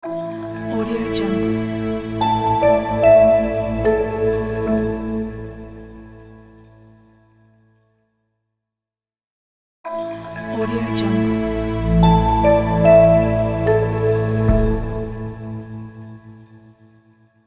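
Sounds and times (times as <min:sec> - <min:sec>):
dreamy cinematic logo music: 0:00.6 - 0:06.7, 0:10.4 - 0:16.7.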